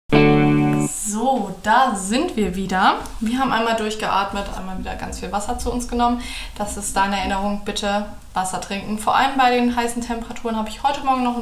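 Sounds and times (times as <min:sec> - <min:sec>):
short music sequence: 0:00.1 - 0:00.8
speech: 0:01.6 - 0:11.4.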